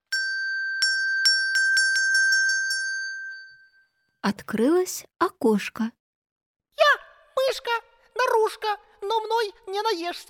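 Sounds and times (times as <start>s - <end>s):
small bright bell ringing: 0.0s - 4.2s
speech: 4.2s - 6.0s, 8.5s - 10.2s.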